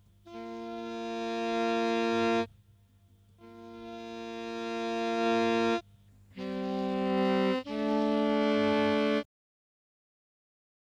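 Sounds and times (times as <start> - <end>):
saxophone: 0.3 - 2.5, 3.4 - 9.3.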